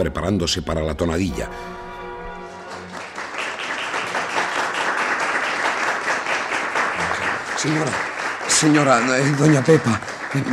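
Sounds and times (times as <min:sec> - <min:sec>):
speech: 0:00.0 - 0:01.8, 0:07.6 - 0:10.5
theatre audience applause: 0:02.4 - 0:10.5.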